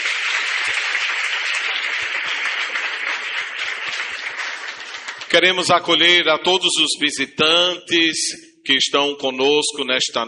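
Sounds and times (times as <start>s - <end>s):
audience round of applause: 0.0s - 5.4s
speech: 5.3s - 10.2s.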